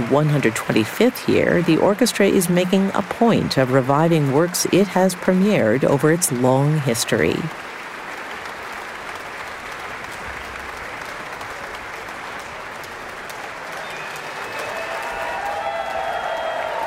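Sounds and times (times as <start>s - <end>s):
large concert audience applause: 0.0s - 16.8s
speech: 0.1s - 7.7s
whistles and cheers: 13.4s - 16.8s.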